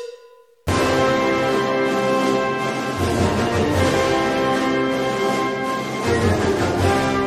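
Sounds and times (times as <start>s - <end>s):
fanfare tattoo: 0.7s - 7.2s.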